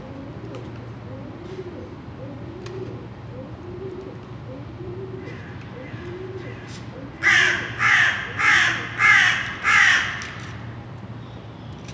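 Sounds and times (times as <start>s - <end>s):
crows cawing: 5.3s - 10.6s.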